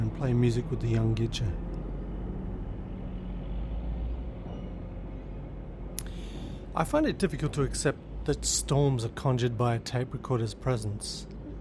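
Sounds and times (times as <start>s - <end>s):
road train truck driving past: 0.0s - 8.5s
speech: 0.2s - 1.8s, 6.8s - 11.4s.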